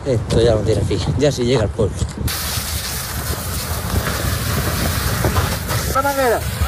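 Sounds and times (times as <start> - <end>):
speech: 0.1 - 2.7, 6.1 - 6.6
wildfire burning at Los Gallardos, Almería: 2.3 - 6.6.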